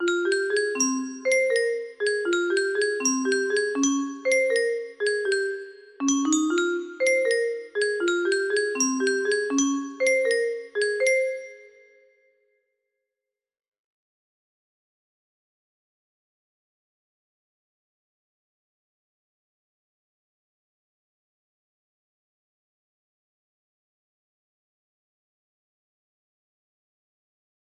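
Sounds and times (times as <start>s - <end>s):
music box melody: 0.0s - 12.1s.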